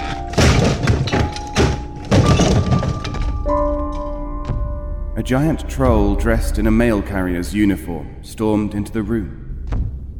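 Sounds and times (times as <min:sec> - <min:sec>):
front door being smashed open: 0:00.0 - 0:04.0
speech: 0:05.2 - 0:09.4.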